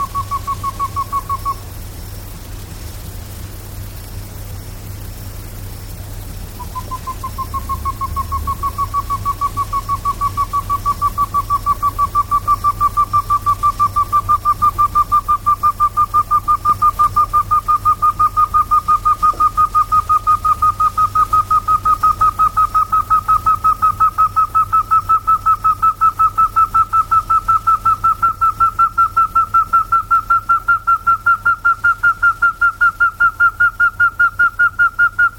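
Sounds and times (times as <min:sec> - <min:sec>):
rail calling whistled notes: 0:00.0 - 0:01.6, 0:06.6 - 0:35.3.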